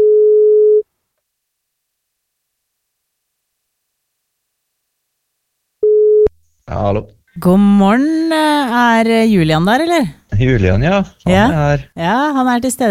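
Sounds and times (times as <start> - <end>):
ringback tone of an outgoing telephone call: 0.0 - 0.8, 5.8 - 6.3
speech: 6.8 - 12.9.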